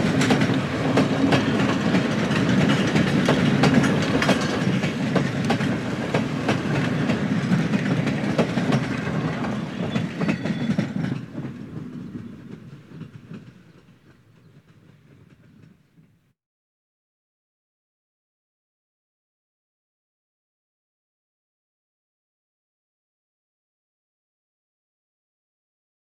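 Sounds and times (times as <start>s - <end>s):
steam train: 0.0s - 16.3s.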